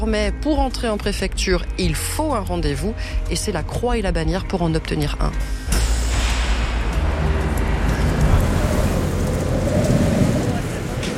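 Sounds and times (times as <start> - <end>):
speech: 0.0 - 5.8
strong wind blowing into microphone outdoors: 7.1 - 11.1.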